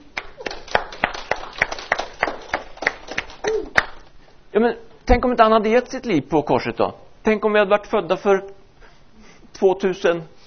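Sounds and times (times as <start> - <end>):
audience applause: 0.2 - 4.1
speech: 4.6 - 8.6, 9.6 - 10.4.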